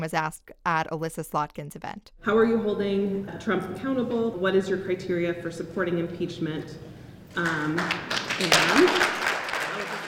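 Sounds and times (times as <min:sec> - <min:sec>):
speech: 0:00.0 - 0:09.1
town hall audience applause: 0:07.4 - 0:10.0.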